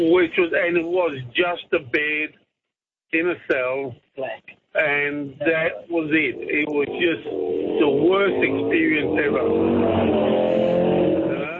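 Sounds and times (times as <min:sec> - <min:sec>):
speech: 0:00.0 - 0:02.4, 0:03.1 - 0:10.4
motorbike riding off: 0:05.9 - 0:11.5.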